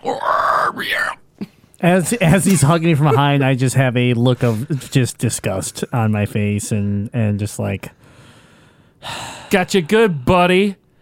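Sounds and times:
voice imitating reptilian wyvern shrieks: 0:00.0 - 0:01.2
speech: 0:01.8 - 0:08.1, 0:09.0 - 0:10.8.

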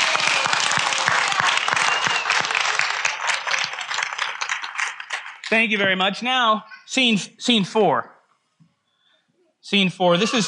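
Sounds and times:
audience applause: 0:00.0 - 0:05.7
speech: 0:05.5 - 0:08.2, 0:09.7 - 0:10.4.

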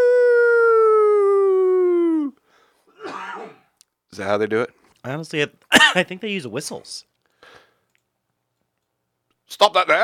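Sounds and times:
person vocally imitating a Bigfoot-like creature howl: 0:00.0 - 0:02.4
speech: 0:04.2 - 0:07.6, 0:09.5 - 0:10.0.

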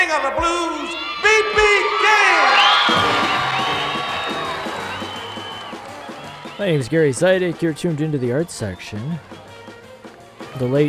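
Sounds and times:
audience applause and cheering: 0:00.0 - 0:10.8
speech: 0:00.1 - 0:01.0, 0:06.6 - 0:09.4, 0:10.6 - 0:10.8.

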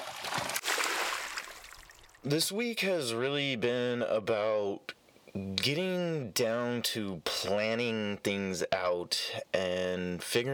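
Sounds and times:
water splash transition sound effect: 0:00.0 - 0:02.2
speech: 0:02.2 - 0:10.5.

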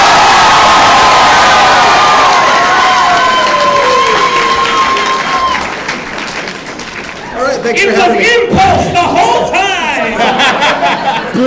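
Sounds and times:
audience applauding and cheering for a vote: 0:00.0 - 0:07.7
speech: 0:07.7 - 0:08.6
laughter: 0:09.2 - 0:11.4.

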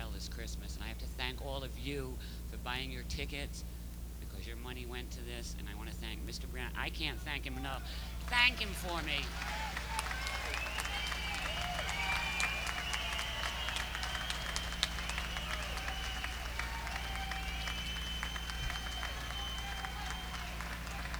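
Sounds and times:
faint hum: 0:00.0 - 0:21.1
speech: 0:01.4 - 0:03.7, 0:04.4 - 0:09.8
audience applause: 0:08.1 - 0:21.1.

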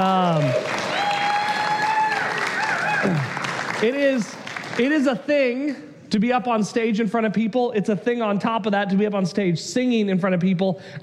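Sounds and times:
audience applause: 0:00.0 - 0:05.2
speech: 0:03.8 - 0:11.0.

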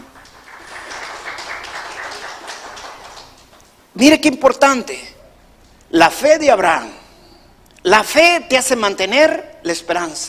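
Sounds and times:
audience applauding: 0:00.0 - 0:03.7
speech: 0:04.0 - 0:05.1, 0:05.9 - 0:07.0, 0:07.8 - 0:10.2.

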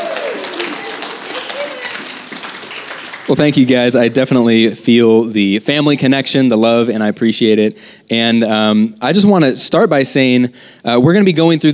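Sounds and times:
applause: 0:00.0 - 0:04.4
speech: 0:03.3 - 0:11.7.

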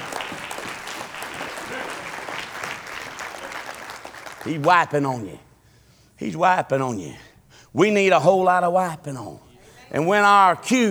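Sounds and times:
audience applause from a large group: 0:00.0 - 0:05.5, 0:09.6 - 0:10.9
laughter: 0:00.0 - 0:05.6, 0:07.8 - 0:10.9
speech: 0:04.4 - 0:05.5, 0:06.2 - 0:10.9.

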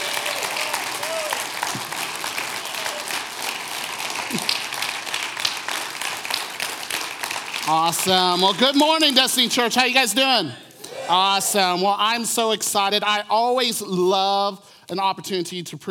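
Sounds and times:
church congregation applauding to welcome a preacher: 0:00.0 - 0:11.8
speech: 0:07.7 - 0:15.8.

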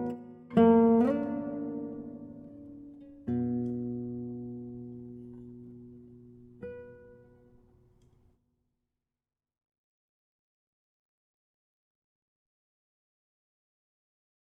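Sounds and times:
guitar: 0:00.0 - 0:08.3.

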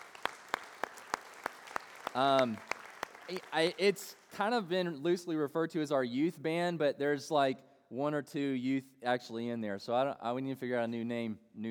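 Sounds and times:
audience applause for the band: 0:00.0 - 0:04.4
speech: 0:02.1 - 0:02.7, 0:03.3 - 0:11.6.

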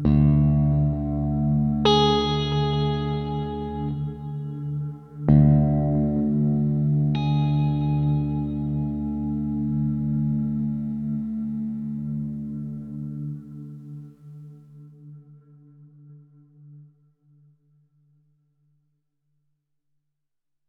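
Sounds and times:
bittersweet guitar: 0:00.0 - 0:14.4.

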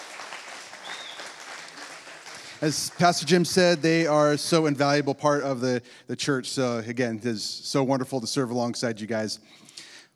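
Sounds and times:
audience applause: 0:00.0 - 0:04.4
speech: 0:02.6 - 0:09.8.

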